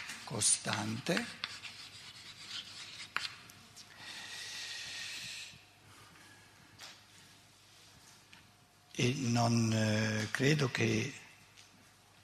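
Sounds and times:
writing on a board during a lecture: 0:00.0 - 0:03.4
speech: 0:00.3 - 0:01.6, 0:09.0 - 0:11.2.

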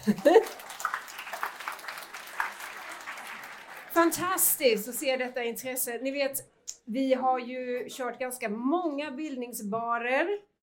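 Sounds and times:
speech: 0:00.0 - 0:00.6, 0:04.0 - 0:10.5
laughter: 0:00.0 - 0:00.7
audience clapping: 0:00.0 - 0:04.8.

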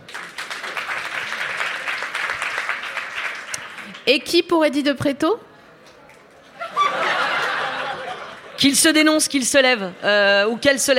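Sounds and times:
small audience applause: 0:00.0 - 0:04.1
speech: 0:04.1 - 0:05.5, 0:08.6 - 0:10.9
laughter: 0:06.5 - 0:08.6.

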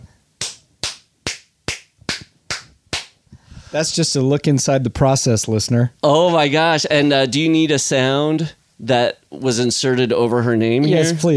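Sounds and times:
hand clap as sync marker: 0:00.4 - 0:03.2
speech: 0:03.7 - 0:11.3.

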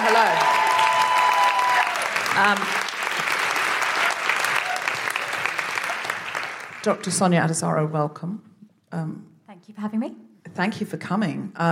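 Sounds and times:
audience clapping greeting a doctor guest at a live comedy show: 0:00.0 - 0:07.2
speech: 0:02.4 - 0:02.9, 0:06.8 - 0:11.7.

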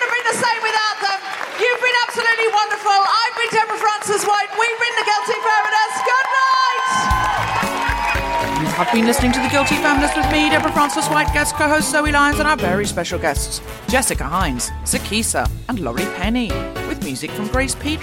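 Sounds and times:
audience applause and cheering: 0:00.0 - 0:12.8
speech: 0:08.8 - 0:18.0.

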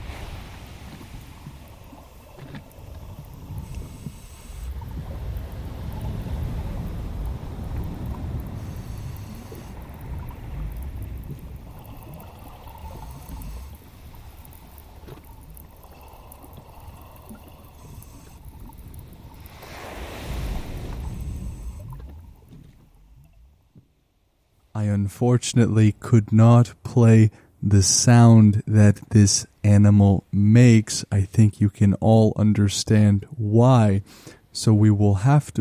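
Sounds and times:
ocean waves in tropical waters: 0:00.0 - 0:23.8
speech: 0:24.8 - 0:35.6.

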